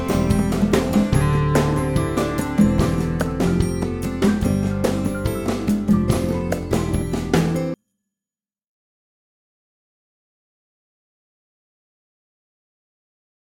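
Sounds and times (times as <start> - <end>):
acoustic bossa nova music: 0.0 - 7.8.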